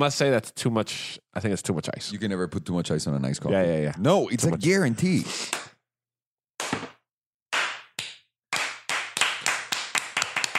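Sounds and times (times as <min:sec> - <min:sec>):
speech: 0:00.0 - 0:05.7
hands clapping: 0:05.4 - 0:05.8, 0:06.6 - 0:10.5.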